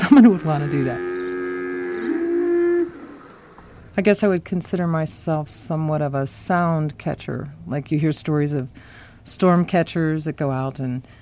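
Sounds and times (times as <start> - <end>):
cows mooing by the roadside: 0.0 - 3.9
speech: 0.2 - 1.1, 4.0 - 11.2.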